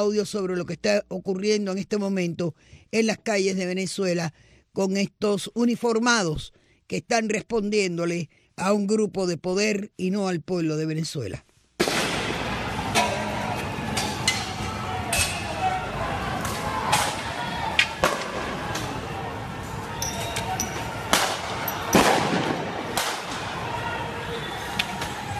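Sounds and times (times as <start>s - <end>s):
speech: 0.0s - 11.5s
gunfire cracks from Bolivarian National Guard tanks firing on crowds in Venezuela: 11.8s - 12.6s, 21.1s - 23.5s
crowd noise and voices in the streets of Venezuela: 12.0s - 25.3s.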